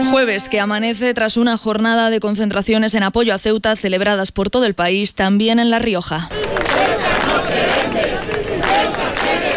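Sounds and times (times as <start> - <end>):
speech: 0.1 - 8.3
large crowd shouting at a rally: 6.3 - 9.5.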